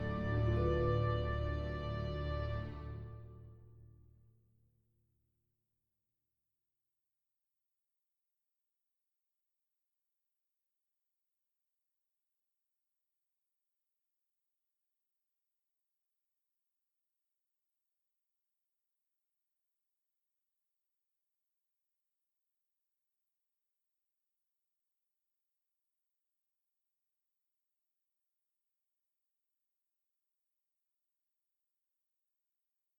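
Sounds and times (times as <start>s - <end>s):
legato lament: 0.0s - 3.2s.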